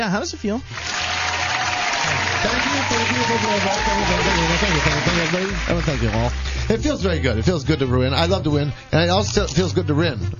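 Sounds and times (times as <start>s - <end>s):
speech: 0.0s - 1.0s, 2.1s - 10.3s
applause: 0.7s - 6.7s.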